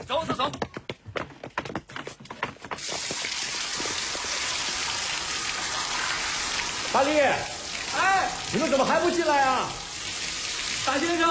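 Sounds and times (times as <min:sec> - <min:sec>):
speech: 0:00.2 - 0:00.7, 0:06.9 - 0:09.8, 0:10.9 - 0:11.2
shower water running: 0:02.8 - 0:11.2.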